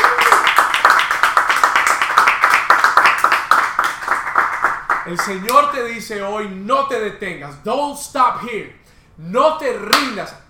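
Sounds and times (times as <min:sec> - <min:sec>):
audience applause: 0:00.0 - 0:05.4
speech: 0:05.1 - 0:10.4.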